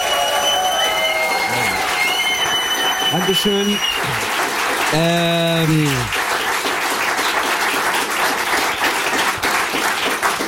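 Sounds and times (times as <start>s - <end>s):
vocal cheer: 0.0s - 2.6s, 3.6s - 4.3s
crowd applauding: 0.0s - 10.4s
speech: 3.1s - 4.3s, 4.9s - 6.2s.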